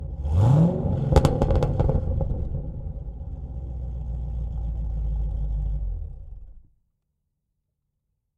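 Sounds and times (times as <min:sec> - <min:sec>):
2014 Camaro ZL1 engine idling and revving, onboard and exhaust mix: 0:00.0 - 0:06.7.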